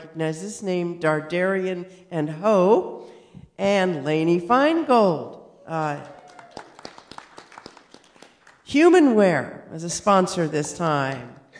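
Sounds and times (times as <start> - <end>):
speech: 0.1 - 6.2, 8.7 - 11.4
hands clapping: 6.0 - 8.6.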